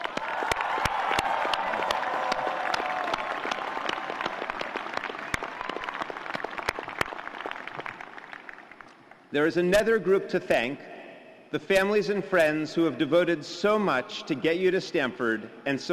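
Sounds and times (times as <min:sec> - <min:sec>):
audience applause at a Stanford graduation ceremony: 0:00.0 - 0:09.2
speech: 0:09.3 - 0:10.9, 0:11.5 - 0:15.9.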